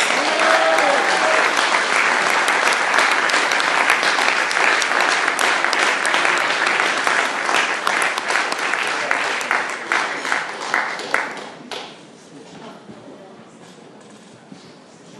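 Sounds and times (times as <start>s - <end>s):
audience applause welcoming a guest speaker: 0.0s - 12.0s.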